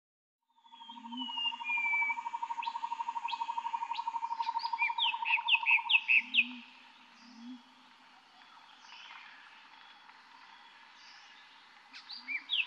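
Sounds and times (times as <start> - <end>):
bird chirping in a calm forest: 0.5 - 12.6.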